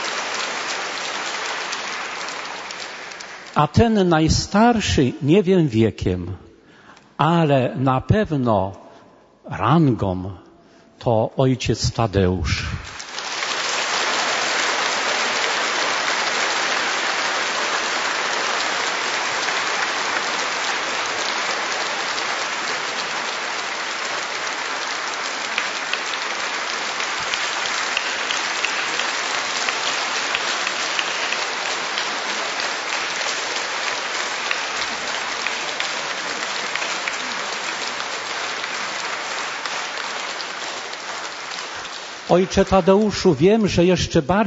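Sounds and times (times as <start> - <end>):
audience applause: 0.0 - 4.4, 12.8 - 43.4
speech: 3.6 - 6.4, 7.2 - 8.8, 9.5 - 10.4, 11.0 - 12.7, 42.3 - 44.4.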